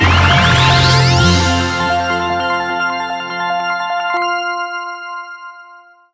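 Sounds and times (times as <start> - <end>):
large win sound: 0.0 - 3.6.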